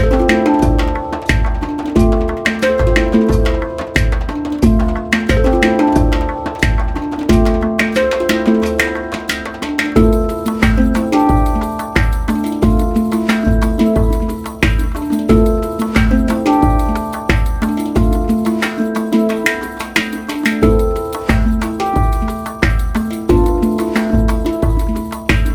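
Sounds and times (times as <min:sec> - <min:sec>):
handpan: 0:00.0 - 0:25.5.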